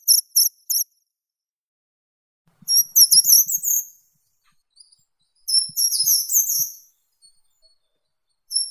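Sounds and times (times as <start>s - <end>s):
short-toed treecreeper Certhia brachydactyla calling: 2.7s - 4.6s, 5.5s - 6.9s.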